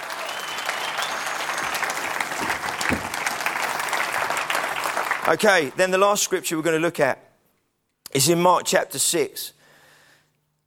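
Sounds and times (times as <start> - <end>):
audience applauding: 0.0 - 5.8
speech: 5.3 - 7.3, 8.1 - 9.6.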